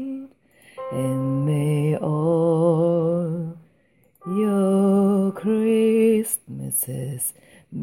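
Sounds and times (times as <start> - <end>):
gospel choir tenors and basses singing: 0.8 - 3.5, 4.2 - 6.4.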